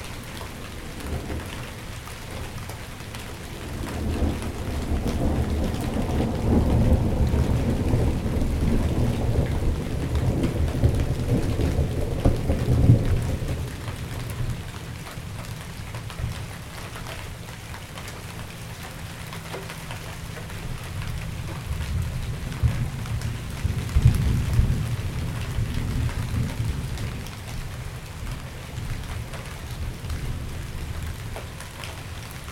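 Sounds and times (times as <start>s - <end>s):
light rain: 0.0s - 32.5s
thunder: 3.5s - 14.6s, 21.5s - 27.7s.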